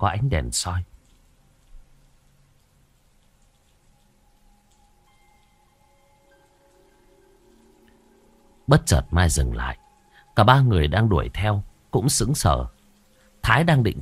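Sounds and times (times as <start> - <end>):
speech: 0.0 - 1.0, 8.7 - 9.8, 10.4 - 12.8, 13.4 - 14.0
rain falling at night: 0.0 - 14.0.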